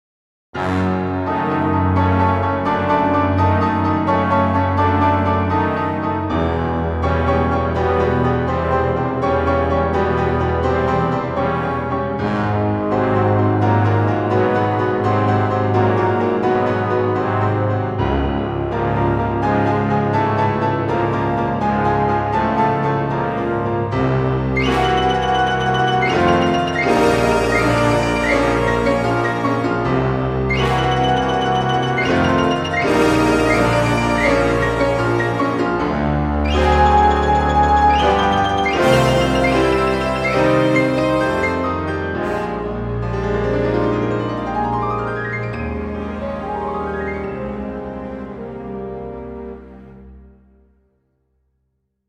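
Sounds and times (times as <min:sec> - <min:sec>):
bass: 0:00.6 - 0:50.6.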